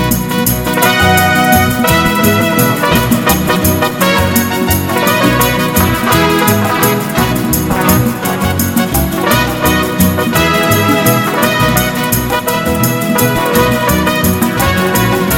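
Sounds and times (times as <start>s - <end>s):
hot fast mariachi music: 0.0s - 15.3s.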